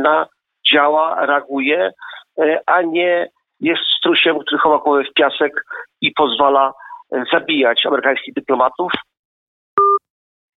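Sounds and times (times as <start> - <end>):
speech: 0.0 - 9.1
telephone tone after a call is cut off: 9.8 - 10.0.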